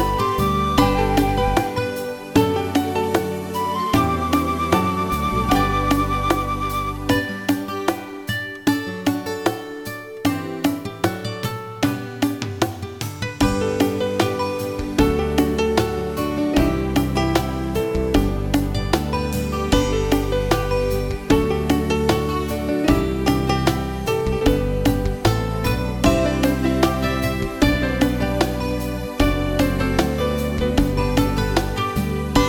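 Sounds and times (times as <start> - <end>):
bongos: 0.0 - 32.4.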